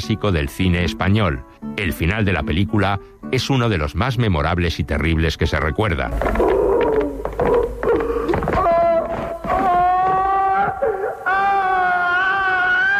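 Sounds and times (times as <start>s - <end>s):
speech: 0.0s - 6.5s
condemned man screaming: 6.2s - 12.9s
condemned man sobbing: 6.4s - 12.9s.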